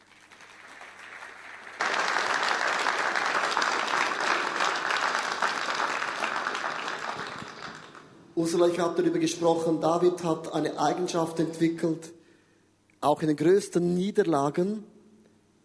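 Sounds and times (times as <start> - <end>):
audience applause: 0.0 - 8.2
speech: 8.4 - 12.2, 13.0 - 14.9.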